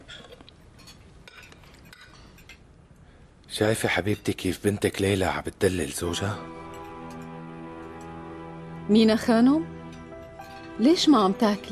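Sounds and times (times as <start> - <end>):
dishes and cutlery clinking as food is served: 0.1 - 2.8, 3.6 - 8.1, 9.8 - 11.7
speech: 3.5 - 6.6, 8.9 - 9.8, 10.8 - 11.7.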